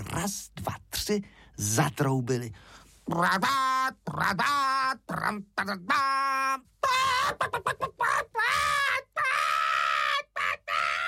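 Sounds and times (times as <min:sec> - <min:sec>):
speech: 0:00.2 - 0:06.7
person imitating a frightened hen shrieking: 0:03.1 - 0:11.0.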